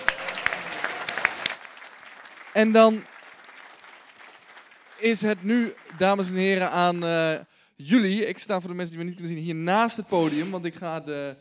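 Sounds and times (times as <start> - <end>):
audience applause: 0.0 - 6.6
speech: 2.6 - 3.1, 5.0 - 11.3.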